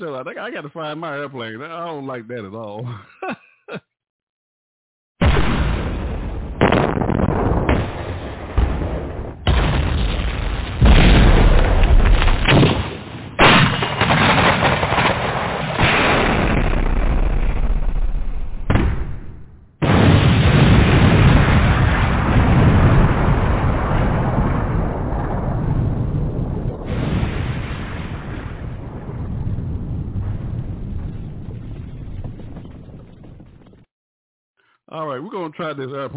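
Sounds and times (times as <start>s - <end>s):
speech: 0.0s - 3.4s, 35.5s - 36.1s
bomb explosion sound effect: 5.2s - 33.7s.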